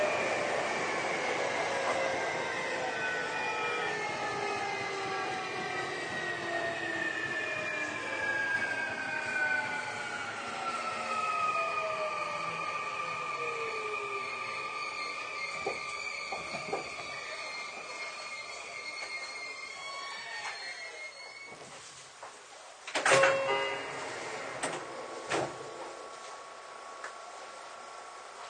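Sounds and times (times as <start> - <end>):
Sotetsu 20000 series train motor whine slowing: 0.0 - 21.6, 23.1 - 28.4.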